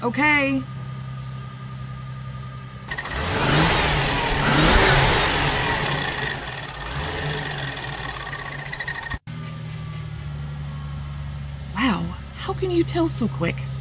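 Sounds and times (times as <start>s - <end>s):
speech: 0.0s - 0.8s, 12.6s - 13.7s
car engine revving during a belt check: 2.9s - 9.2s.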